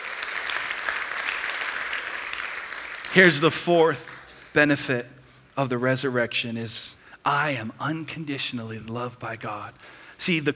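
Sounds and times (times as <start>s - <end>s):
audience applause: 0.0s - 4.5s
speech: 3.1s - 10.5s.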